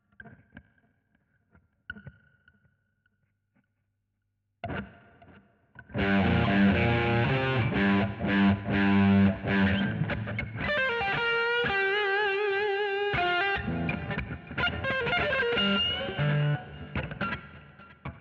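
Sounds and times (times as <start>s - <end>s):
guitar solo: 5.9s - 18.1s.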